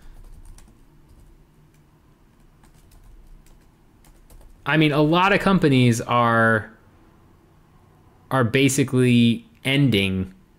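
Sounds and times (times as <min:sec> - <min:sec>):
computer keyboard typing a web search: 0:00.0 - 0:04.6
speech: 0:04.7 - 0:06.7, 0:08.3 - 0:10.4.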